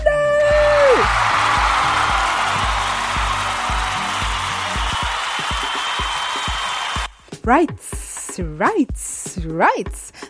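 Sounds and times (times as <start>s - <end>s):
high whoop: 0.3s - 7.1s
crowd cheering: 0.4s - 7.1s
speech: 7.5s - 10.2s.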